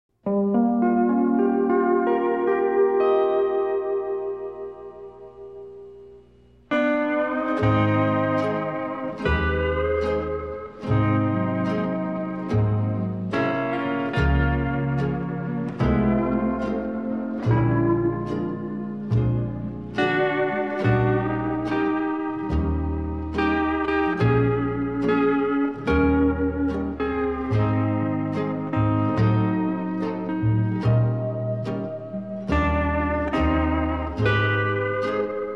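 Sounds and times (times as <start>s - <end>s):
instrumental music: 0.1s - 35.5s.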